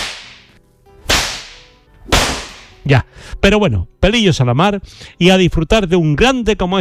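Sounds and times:
whip lashes: 0:00.0 - 0:02.8
speech: 0:02.9 - 0:06.8.

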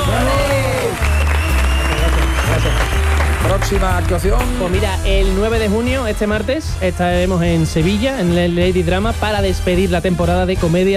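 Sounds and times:
loud steady audience applause: 0:00.0 - 0:04.8
speech: 0:03.7 - 0:10.9.

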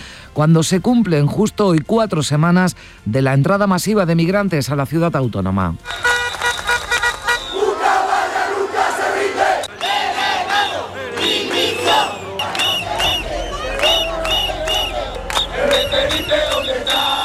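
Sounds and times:
speech: 0:00.4 - 0:06.1
car horn: 0:05.8 - 0:07.8, 0:11.6 - 0:17.2
whistles: 0:05.8 - 0:08.1, 0:09.6 - 0:17.2
protest crowd shouting and chanting in the street: 0:07.2 - 0:17.2.

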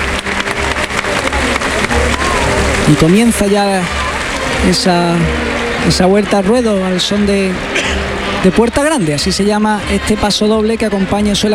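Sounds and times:
bullfight crowd at La Malagueta applauding fervently: 0:00.0 - 0:11.5
speech: 0:02.9 - 0:04.0, 0:04.6 - 0:11.5.

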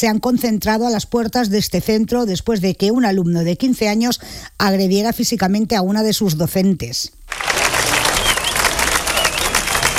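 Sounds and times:
speech: 0:00.0 - 0:07.6
faint cheers: 0:07.3 - 0:09.9
sizable outdoor crowd applauding: 0:07.3 - 0:09.9.

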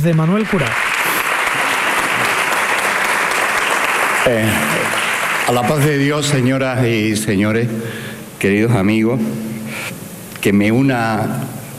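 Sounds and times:
speech: 0:00.0 - 0:00.9, 0:04.2 - 0:11.6
audience ovation applause: 0:00.0 - 0:06.4.

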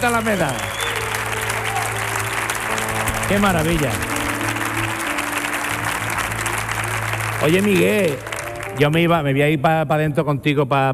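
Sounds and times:
speech: 0:00.0 - 0:00.7, 0:03.3 - 0:04.1, 0:07.4 - 0:10.9
audience applause: 0:00.0 - 0:09.3.

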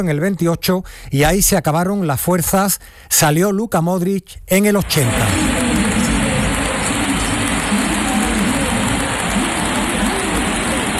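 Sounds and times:
speech: 0:00.0 - 0:05.7
stadium crowd ovation at the Sánchez Pizjuán: 0:04.8 - 0:10.9.

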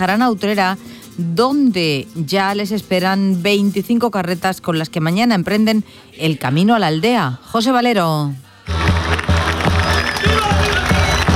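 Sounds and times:
speech: 0:00.0 - 0:08.4
street crowd applauding and cheering in Málaga: 0:08.6 - 0:11.3.

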